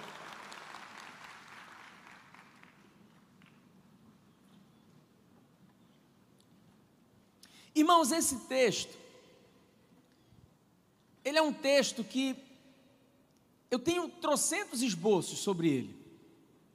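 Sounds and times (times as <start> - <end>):
audience applause: 0.0 - 3.6
speech: 7.7 - 9.0, 11.4 - 12.5, 13.7 - 16.0.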